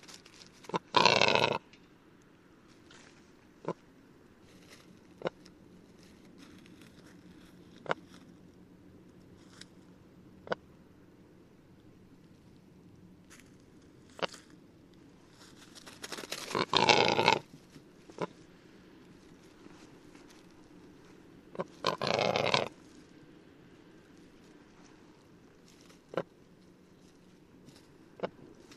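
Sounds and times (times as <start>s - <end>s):
rackelhahn black grouse capercaillie hybrid grating croak: 0.0s - 1.8s, 3.6s - 3.9s, 4.7s - 5.5s, 7.7s - 8.2s, 10.4s - 10.7s, 14.1s - 14.4s, 15.9s - 18.5s, 19.1s - 22.8s, 24.2s - 26.4s, 27.6s - 28.7s.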